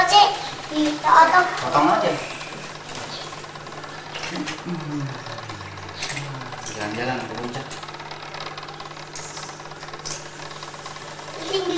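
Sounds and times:
speech: 0.8s - 2.3s, 4.3s - 5.5s, 6.8s - 7.8s, 11.5s - 11.7s
truck engine: 3.6s - 11.5s.

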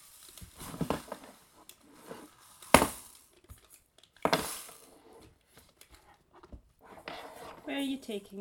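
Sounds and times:
rain stick being shaken: 0.0s - 4.9s
speech: 7.7s - 8.4s.

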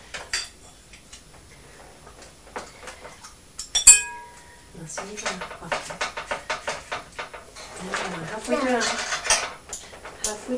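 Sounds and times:
big kitchen bowl clinking while chocolate melts: 3.6s - 10.5s
speech: 4.9s - 6.3s, 7.8s - 9.2s, 10.3s - 10.5s.

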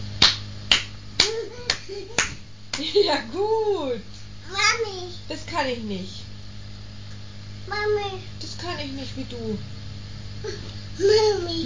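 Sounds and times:
hand clapping: 0.2s - 3.0s
speech: 2.9s - 6.2s, 7.7s - 9.8s, 10.4s - 11.6s.

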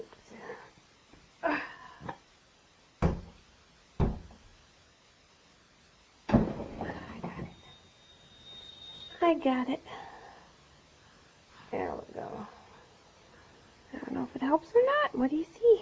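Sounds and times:
window being shut: 3.0s - 3.4s, 4.0s - 4.4s, 6.3s - 7.1s
speech: 9.2s - 10.0s, 14.5s - 15.8s.

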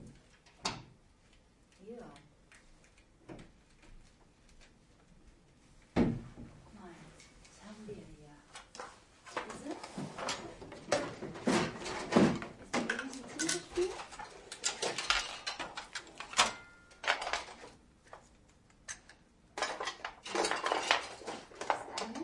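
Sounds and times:
objects rummaged through in a cupboard: 8.7s - 18.3s, 19.5s - 22.2s.

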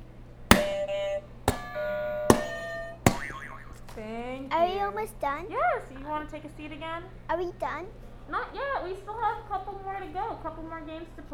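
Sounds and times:
game show buzzer with bell-like ringing tone: 0.5s - 3.7s
speech: 4.0s - 11.3s.

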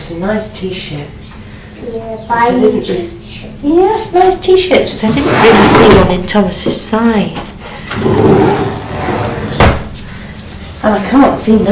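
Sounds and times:
speech: 0.1s - 8.7s, 10.8s - 11.6s
faint low household sounds: 1.3s - 9.9s
wooden drawer scraping open at home: 5.0s - 6.1s, 8.0s - 9.6s.

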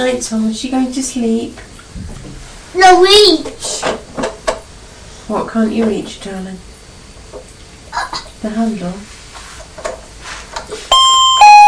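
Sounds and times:
speech: 0.0s - 2.2s, 2.8s - 4.0s, 5.3s - 6.7s, 8.4s - 9.2s
doorbell chime: 10.9s - 11.6s.

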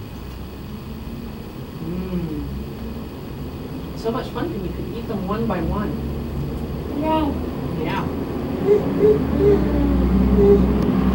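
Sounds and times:
bus passing: 2.7s - 11.1s
speech: 4.0s - 6.2s, 7.0s - 10.8s.

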